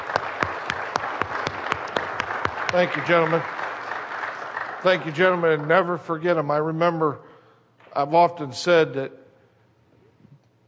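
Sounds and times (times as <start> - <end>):
audience applause honouring fallen servicemen: 0.0 - 6.6
speech: 2.7 - 3.6, 4.8 - 7.3, 8.0 - 9.2.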